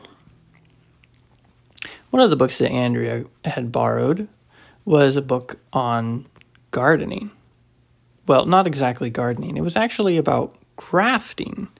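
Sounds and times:
chewing candy: 0.4s - 2.1s
speech: 2.1s - 7.4s, 8.3s - 11.7s.

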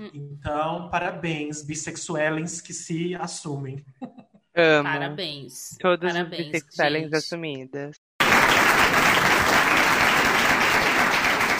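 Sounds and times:
speech: 0.0s - 8.0s
hand clapping: 8.2s - 11.5s.

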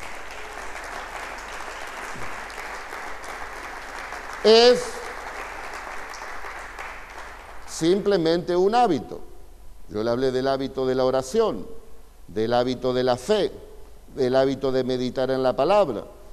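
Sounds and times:
audience applause: 0.0s - 7.6s
speech: 4.4s - 4.9s, 7.8s - 9.3s, 9.9s - 16.2s.

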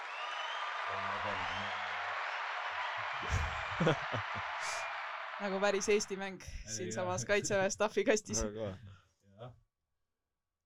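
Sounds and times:
applause sound effect: 0.0s - 6.2s
laughter: 0.9s - 1.7s, 3.0s - 4.8s, 6.7s - 8.7s
speech: 3.1s - 9.6s.

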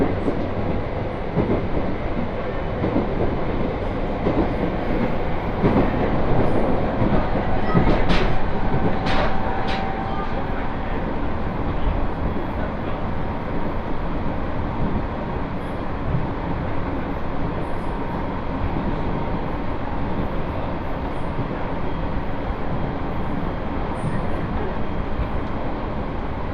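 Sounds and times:
Tohoku Main Line rail clatter: 0.0s - 12.7s
Tohoku Main Line train interior rumble running north: 0.0s - 26.5s.

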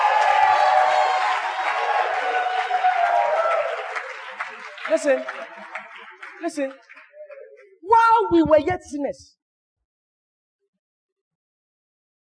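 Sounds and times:
audience cheering: 0.0s - 6.5s
audience applause: 0.0s - 7.8s
speech: 4.9s - 5.6s, 6.4s - 6.9s, 7.9s - 9.4s.

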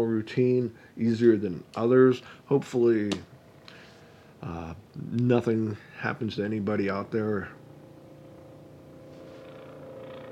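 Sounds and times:
speech: 0.0s - 3.3s, 4.4s - 7.6s
helicopter flying overhead: 3.3s - 4.4s, 6.8s - 10.3s.

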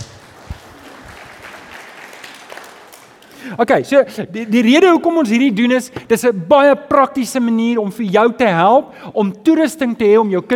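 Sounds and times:
audience applause: 0.0s - 3.5s
speech: 3.4s - 10.5s.

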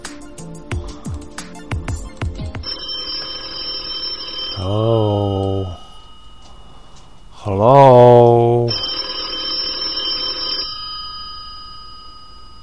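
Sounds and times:
outgoing telephone call ringing: 2.6s - 12.6s
speech: 4.6s - 5.1s, 7.6s - 8.0s.

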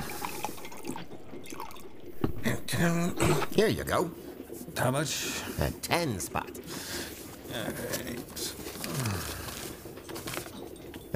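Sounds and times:
scotch and soda being poured into a glass: 0.0s - 1.9s
speech: 2.8s - 4.2s, 4.8s - 6.9s, 7.6s - 9.1s.

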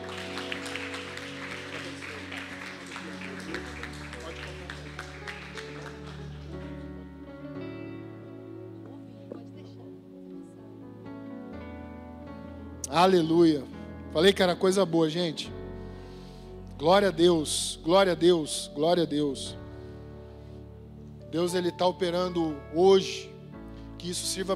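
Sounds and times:
audience applause: 0.0s - 7.1s
organ or keyboard chords: 0.0s - 24.5s
speech: 12.9s - 15.6s, 16.8s - 19.6s, 21.3s - 23.3s, 24.0s - 24.5s.

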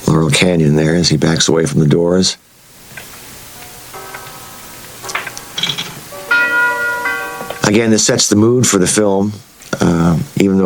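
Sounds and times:
speech: 0.1s - 2.5s, 7.7s - 10.6s
clock bell striking one o'clock: 3.6s - 8.2s.

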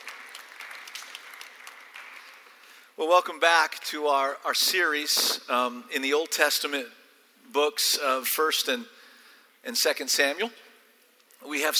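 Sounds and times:
audience clapping: 0.0s - 2.8s
speech: 3.0s - 9.0s, 9.6s - 10.6s, 11.4s - 11.7s.

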